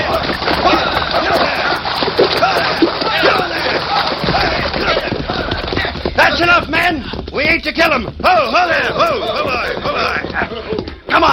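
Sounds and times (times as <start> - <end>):
splashing of a man dragged through creek: 0.0 - 6.8
laughter: 0.0 - 11.3
people shouting: 0.0 - 11.3.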